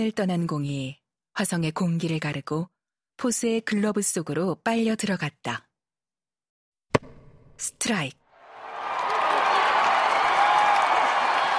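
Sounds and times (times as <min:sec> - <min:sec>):
speech: 0:00.0 - 0:05.7, 0:07.6 - 0:08.2
large stadium crowd cheering: 0:08.4 - 0:11.5.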